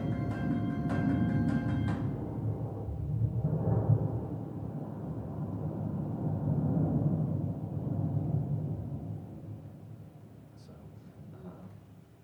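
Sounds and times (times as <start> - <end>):
thunderclap echoing across a valley: 0.0 - 9.7.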